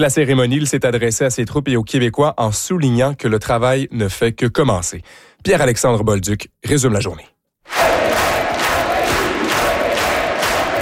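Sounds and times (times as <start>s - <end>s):
speech: 0.0s - 7.8s
packed room of people cheering: 7.7s - 10.7s.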